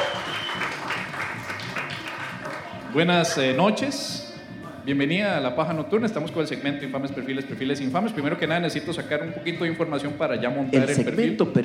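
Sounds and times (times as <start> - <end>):
audience applauding: 0.0 - 3.5
speech: 2.9 - 4.2, 4.8 - 11.6.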